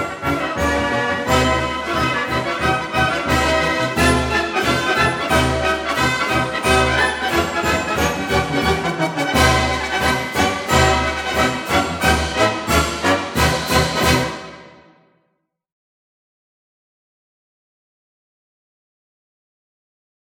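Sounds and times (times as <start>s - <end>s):
military band march: 0.0s - 14.8s.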